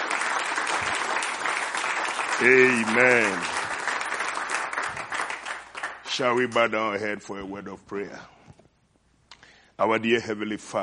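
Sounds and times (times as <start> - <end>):
church congregation applauding during a service: 0.0 - 6.5
speech: 2.4 - 3.6, 6.2 - 8.4, 9.8 - 10.8.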